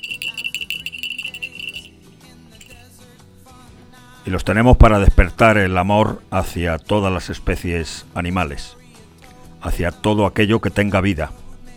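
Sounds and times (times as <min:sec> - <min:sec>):
jingle bells ringing: 0:00.0 - 0:01.9
speech: 0:04.2 - 0:08.8, 0:09.6 - 0:11.4.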